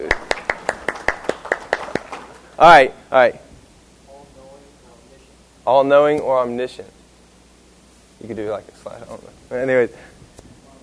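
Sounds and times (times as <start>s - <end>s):
hands clapping for a round of applause: 0.0s - 2.5s
speech: 2.6s - 3.4s, 5.7s - 7.0s, 8.2s - 10.1s.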